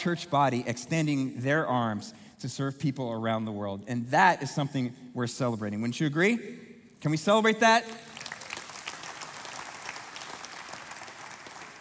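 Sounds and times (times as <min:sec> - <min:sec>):
speech: 0:00.0 - 0:08.1
audience applause: 0:08.1 - 0:11.7.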